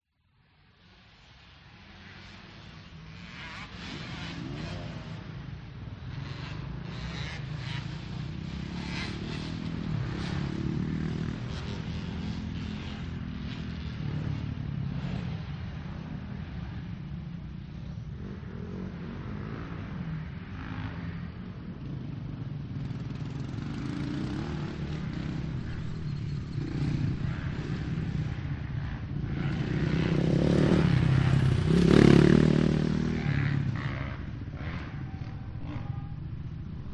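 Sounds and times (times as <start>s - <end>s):
motocross motorcycles racing past: 0.4s - 36.9s.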